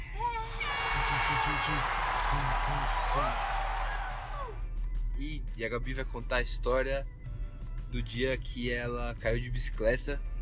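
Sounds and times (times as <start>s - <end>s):
applause for a guest: 0.7s - 4.6s
speech: 5.2s - 7.2s, 7.9s - 10.3s.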